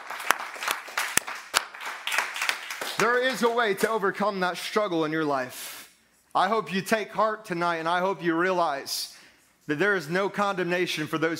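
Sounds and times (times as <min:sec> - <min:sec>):
audience clapping hands in praise: 0:00.0 - 0:04.0
speech: 0:03.0 - 0:05.7, 0:06.3 - 0:11.3.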